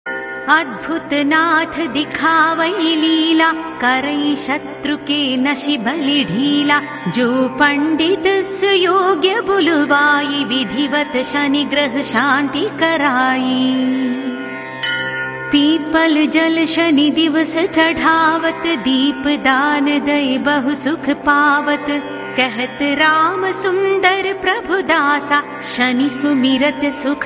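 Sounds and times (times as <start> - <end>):
devotional chanting: 0.5 - 27.2.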